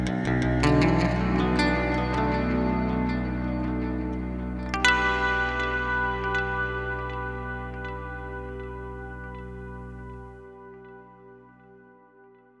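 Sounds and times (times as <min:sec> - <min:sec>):
LTD Baritone ambient crystal clean tone: 0:00.0 - 0:12.1.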